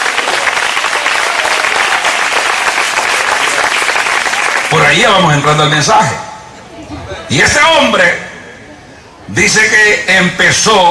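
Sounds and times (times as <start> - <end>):
audience applauding: 0.0 - 5.0
speech: 4.9 - 6.3, 7.3 - 8.2, 9.3 - 10.8.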